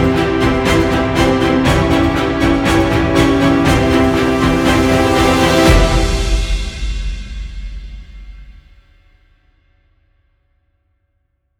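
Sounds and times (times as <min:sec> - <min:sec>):
tense horror thriller music: 0:00.0 - 0:08.7.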